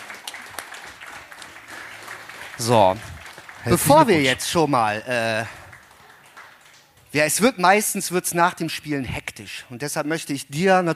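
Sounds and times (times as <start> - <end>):
audience clapping for a prize winner at a game giveaway event: 0.0 - 8.1
speech: 2.6 - 5.6, 7.1 - 10.9.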